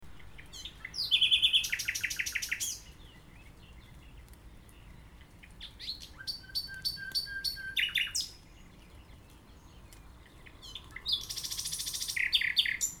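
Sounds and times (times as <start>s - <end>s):
common nightingale singing: 0.1s - 3.9s, 5.6s - 8.8s, 9.5s - 12.9s.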